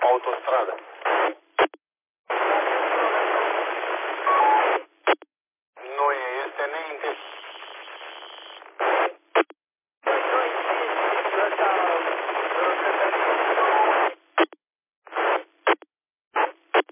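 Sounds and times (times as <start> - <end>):
faint garbled radio modulation: 0.0 - 5.2, 5.8 - 15.8
speech: 0.2 - 1.4
long hissing radio transmission squelch tail: 2.3 - 4.8, 5.8 - 9.2, 10.1 - 14.2.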